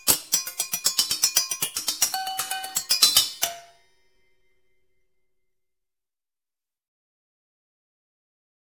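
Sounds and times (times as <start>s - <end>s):
drum music: 0.0s - 3.7s.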